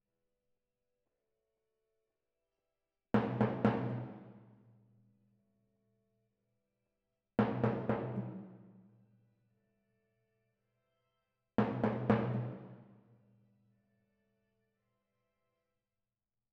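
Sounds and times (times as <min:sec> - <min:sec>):
timpani in F: 0:03.2 - 0:04.5, 0:07.4 - 0:08.8, 0:11.6 - 0:12.9.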